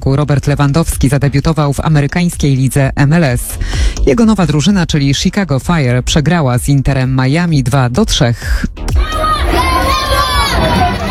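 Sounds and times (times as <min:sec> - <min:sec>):
speech: 0:00.0 - 0:09.2
football fans cheering and shouting at an MLS match: 0:08.9 - 0:11.0.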